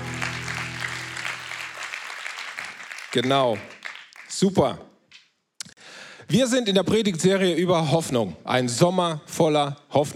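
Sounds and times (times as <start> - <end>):
audience applause for the band: 0.0 - 4.5
speech: 3.1 - 3.7, 4.4 - 4.9, 6.3 - 10.1.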